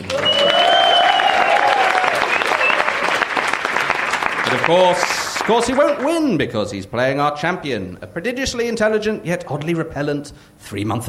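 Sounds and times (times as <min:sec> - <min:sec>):
whooping: 0:00.0 - 0:03.4
audience applause from a large crowd: 0:00.0 - 0:06.3
whistle: 0:00.1 - 0:03.0
speech: 0:04.5 - 0:11.0.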